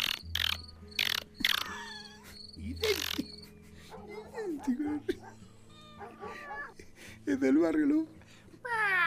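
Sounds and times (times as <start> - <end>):
rufous hornero birds singing persistently: 0.0 - 4.2
speech: 2.7 - 3.3, 7.2 - 8.9.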